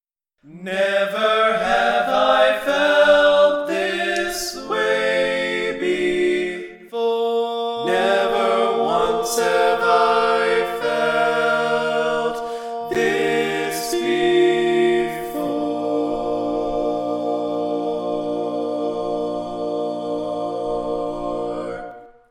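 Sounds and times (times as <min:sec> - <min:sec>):
barbershop lead singing: 0:00.5 - 0:21.9.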